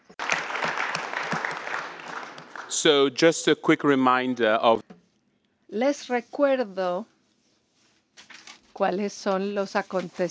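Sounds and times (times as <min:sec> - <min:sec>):
audience applause for speakers and chair at a conference session: 0:00.0 - 0:03.3
speech: 0:02.8 - 0:04.9, 0:05.7 - 0:07.1, 0:08.8 - 0:10.2.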